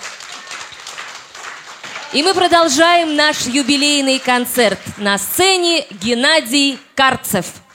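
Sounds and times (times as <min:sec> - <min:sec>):
audience applause: 0:00.0 - 0:05.6
speech: 0:02.1 - 0:07.6.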